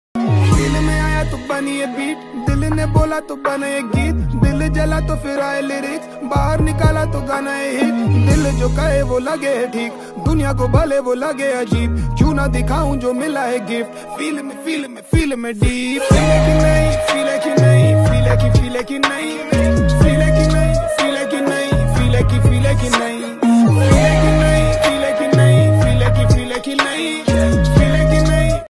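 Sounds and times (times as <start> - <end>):
Hindi rap ringtone: 0.2 - 28.6.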